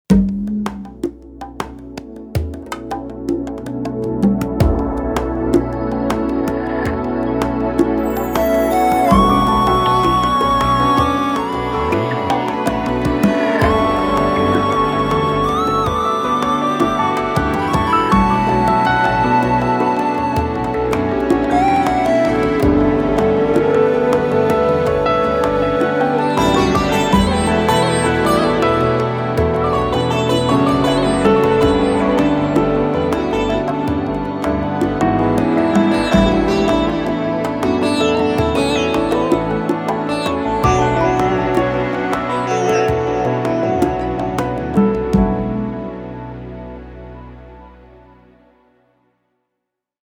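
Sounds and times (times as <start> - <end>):
ethnic music: 0.1 - 48.0.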